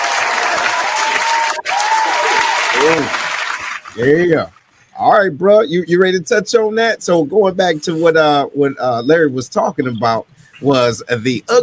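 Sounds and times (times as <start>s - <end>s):
round of applause: 0.0s - 4.6s
speech: 2.8s - 3.2s, 4.0s - 11.6s.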